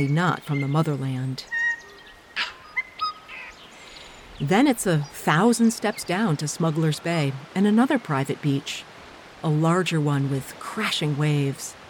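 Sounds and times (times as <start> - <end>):
speech: 0.0 - 1.6, 4.4 - 11.8
tui calling: 0.0 - 5.2.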